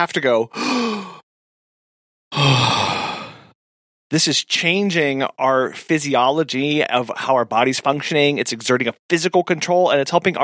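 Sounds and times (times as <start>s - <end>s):
speech: 0.0s - 1.2s, 4.1s - 10.4s
deep breath taken to calm down: 0.5s - 1.2s, 2.3s - 3.6s.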